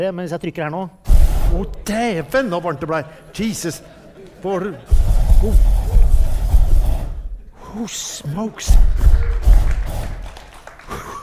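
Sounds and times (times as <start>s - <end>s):
speech: 0.0s - 5.8s, 7.8s - 9.3s
aerosol can butane-propane mixture igniting: 1.1s - 2.4s, 4.9s - 7.5s, 8.7s - 10.4s
laughter: 1.6s - 7.7s, 9.0s - 11.2s.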